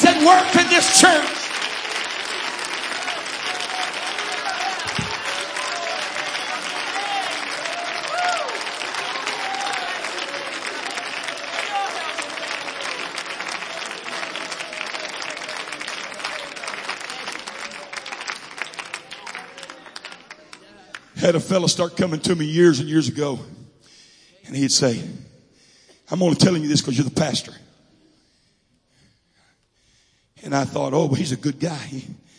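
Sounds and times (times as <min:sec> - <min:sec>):
crowd clapping hands: 0:00.0 - 0:21.6
speech: 0:00.2 - 0:01.4, 0:21.3 - 0:23.6, 0:24.5 - 0:25.3, 0:26.1 - 0:27.7, 0:30.5 - 0:32.3.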